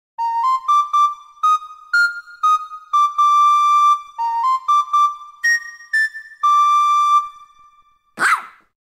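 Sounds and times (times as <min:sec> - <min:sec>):
flute playing: 0:00.2 - 0:08.1.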